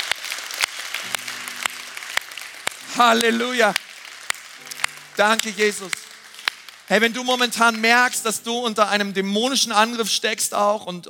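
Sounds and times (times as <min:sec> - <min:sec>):
audience applause: 0:00.0 - 0:07.4
speech: 0:03.0 - 0:03.8, 0:05.2 - 0:06.0, 0:06.9 - 0:11.0.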